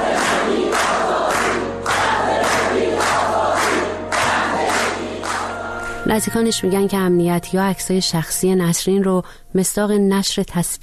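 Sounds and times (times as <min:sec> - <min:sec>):
large protest crowd chanting a slogan in unison in the street: 0:00.0 - 0:05.7
speech: 0:06.1 - 0:10.8.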